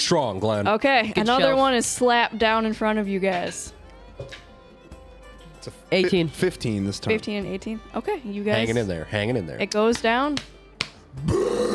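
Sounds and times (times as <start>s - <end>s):
speech: 0.1s - 4.4s, 5.6s - 10.5s, 11.2s - 11.7s
burp: 11.2s - 11.7s.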